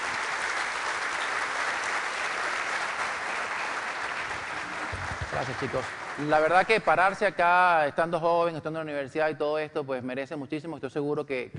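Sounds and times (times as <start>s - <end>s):
audience applause: 0.0s - 7.2s
speech: 5.3s - 11.5s.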